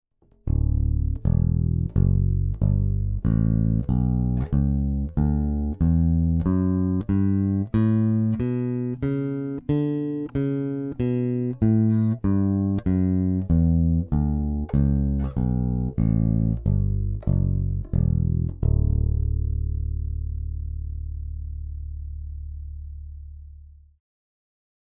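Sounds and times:
Big Blade passive neck pickup tone: 0.2 - 23.9.

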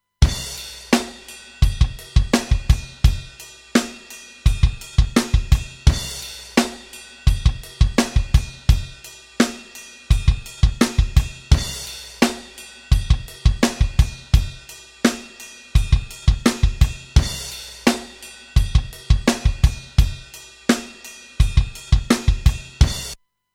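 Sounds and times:
drums with saturation: 0.2 - 23.2.

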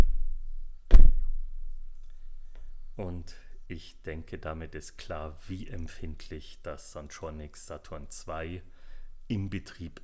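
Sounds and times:
gentle foot stomping picked up by microphone: 0.0 - 1.6
speech: 3.0 - 8.7, 9.3 - 10.0.

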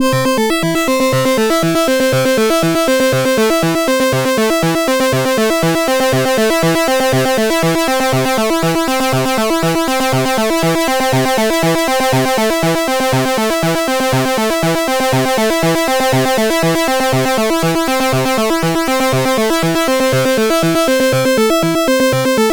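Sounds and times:
Moogerfooger synth with extra FM amount: 0.0 - 22.4.

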